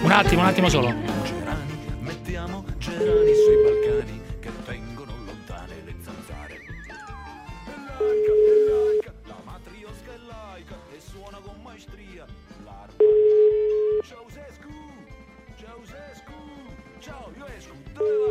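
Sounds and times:
speech: 0.2s - 1.1s
telephone call ringing tone: 3.0s - 4.0s, 8.0s - 9.0s, 13.0s - 14.0s, 18.0s - 18.2s.

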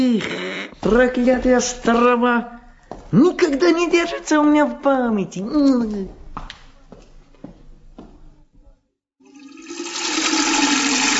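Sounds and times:
speech: 0.0s - 6.2s
water pouring from a barrel into a tin watering can: 9.3s - 11.1s.

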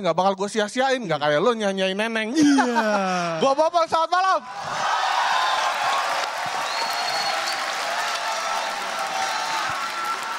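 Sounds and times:
speech: 0.0s - 5.1s
stand-up comedy audience applause: 4.6s - 10.3s.

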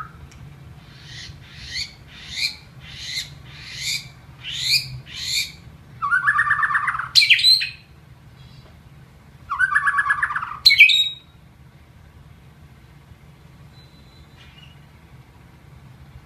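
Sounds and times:
white-rumped shama training song with rich whistles and buzzy bursts: 0.9s - 8.6s, 9.5s - 11.4s, 13.7s - 14.9s.

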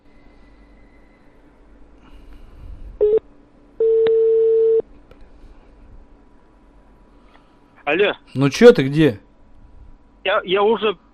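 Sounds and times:
long steady telephone tone: 3.0s - 3.2s, 3.8s - 4.8s
telephone beep while placing a call: 3.8s - 4.8s
speech: 7.9s - 9.3s, 10.2s - 11.0s.

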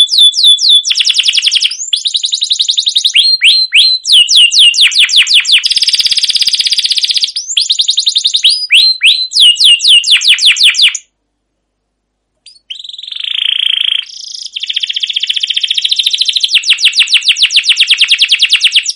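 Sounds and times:
canary song with long rolling trills and cuit cuit notes: 0.0s - 11.1s, 12.4s - 18.9s.

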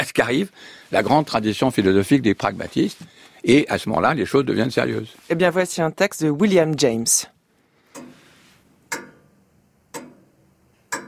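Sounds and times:
speech: 0.0s - 7.3s
clock ticking: 7.9s - 8.2s, 8.9s - 9.3s, 9.9s - 11.0s.

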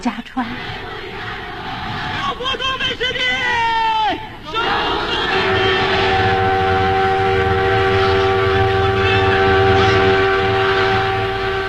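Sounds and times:
freight train bound for Nanjing rumbling: 0.0s - 11.6s
freight train horn holding a sustained chord: 4.5s - 11.6s.

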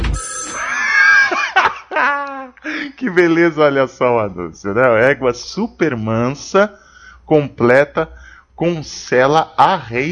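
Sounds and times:
radio show prank-call jingle with ringing telephone bell: 0.1s - 0.8s
laughter: 0.5s - 2.9s
speech: 3.1s - 10.1s.

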